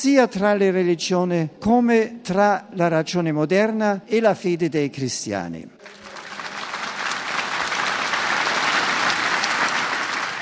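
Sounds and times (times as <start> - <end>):
speech: 0.0 - 6.0
crowd applauding: 5.8 - 10.3.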